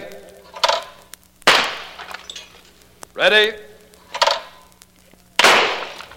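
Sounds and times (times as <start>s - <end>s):
shotgun blasts: 0.0s - 2.2s, 5.4s - 6.1s
speech: 3.2s - 3.7s.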